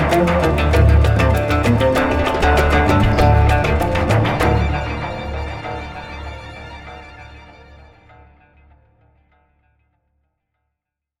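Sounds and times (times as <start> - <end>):
rhythm for oud: 0.0 - 7.8.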